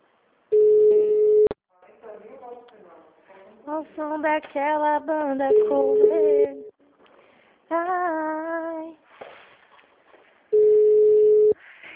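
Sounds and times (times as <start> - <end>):
telephone line tone: 0.5 - 1.5, 5.5 - 6.7, 10.6 - 11.6
speech: 3.7 - 6.6.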